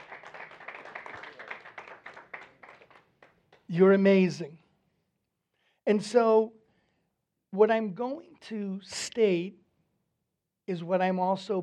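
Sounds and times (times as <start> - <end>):
audience clapping hands: 0.0 - 3.7
speech: 3.7 - 4.6, 5.9 - 6.6, 7.5 - 9.6, 10.7 - 11.6.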